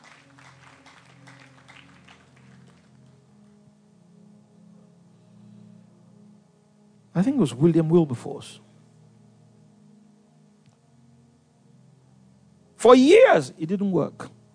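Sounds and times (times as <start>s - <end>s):
audience clapping: 0.0s - 3.2s
speech: 7.2s - 8.7s, 12.8s - 14.3s.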